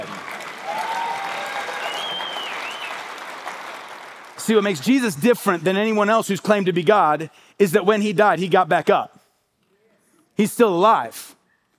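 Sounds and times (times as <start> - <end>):
crowd applauding: 0.0 - 6.0
faint whistles or cheers: 0.6 - 3.1
speech: 4.5 - 9.1, 10.4 - 11.4.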